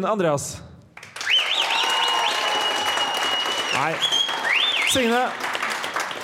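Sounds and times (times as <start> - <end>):
speech: 0.0 - 0.7, 3.8 - 4.1, 4.9 - 5.4
audience applause: 1.0 - 6.2
shrill repeated whistle: 1.2 - 5.2.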